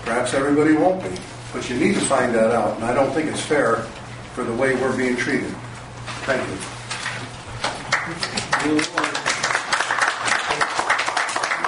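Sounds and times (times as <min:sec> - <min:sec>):
speech: 0:00.1 - 0:05.6, 0:06.3 - 0:06.7, 0:08.1 - 0:09.0
audience applause at a public meeting: 0:07.9 - 0:11.6.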